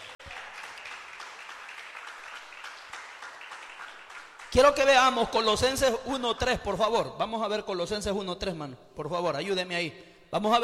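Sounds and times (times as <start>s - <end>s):
audience applause: 0.0s - 4.7s
speech: 4.6s - 10.6s.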